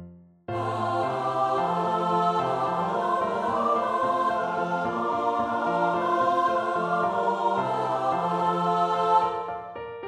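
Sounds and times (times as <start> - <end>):
SATB choir singing a practice part: 0.5 - 9.9.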